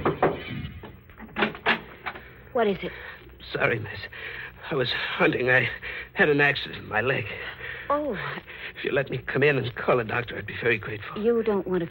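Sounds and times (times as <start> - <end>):
knocking on a wooden door: 0.0 - 1.0
speech: 2.6 - 11.8.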